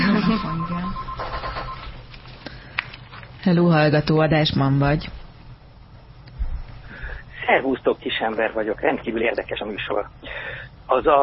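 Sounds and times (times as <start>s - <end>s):
telephone ringing: 0.0s - 2.0s
speech: 3.4s - 5.2s, 7.5s - 11.2s.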